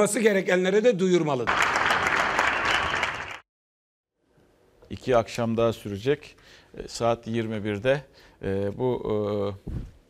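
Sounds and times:
speech: 0.0s - 1.8s, 4.9s - 9.9s
applause for health workers: 1.4s - 3.5s.

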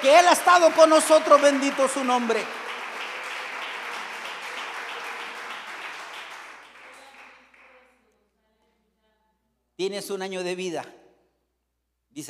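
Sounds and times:
speech: 0.0s - 2.6s, 9.8s - 11.0s
audience applause: 0.0s - 7.8s.

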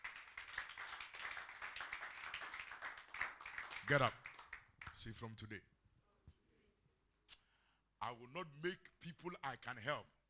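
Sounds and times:
audience clapping: 0.0s - 5.2s
speech: 3.9s - 4.2s, 5.0s - 5.7s, 8.0s - 10.2s.

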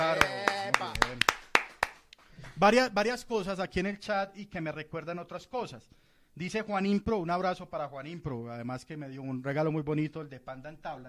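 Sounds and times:
clapping: 0.0s - 2.6s
speech: 2.6s - 11.0s.

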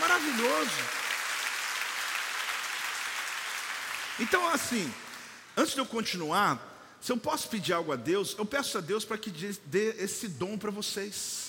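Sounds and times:
crowd applause: 0.0s - 5.4s
speech: 0.2s - 1.1s, 4.2s - 5.0s, 5.6s - 11.4s.

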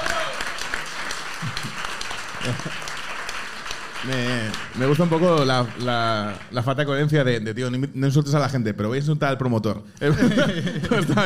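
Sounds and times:
audience applause: 0.0s - 7.3s
laughter: 1.4s - 2.9s, 10.0s - 11.2s
speech: 2.4s - 2.9s, 4.0s - 11.2s.

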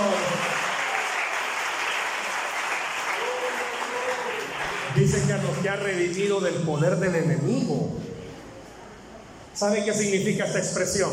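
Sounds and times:
audience applause: 0.0s - 5.6s
speech: 5.0s - 8.1s, 9.6s - 11.1s.

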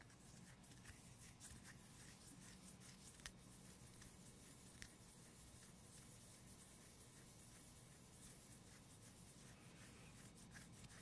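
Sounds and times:
low continuous murmur: 0.0s - 11.0s
soft rubbing strokes in an ASMR style: 0.0s - 11.0s.

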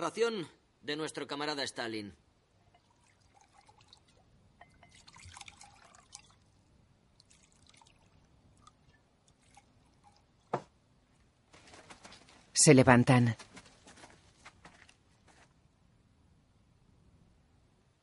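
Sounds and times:
speech: 0.0s - 2.3s, 12.6s - 13.5s
liquid pouring from a bottle into glasses: 2.6s - 10.6s.

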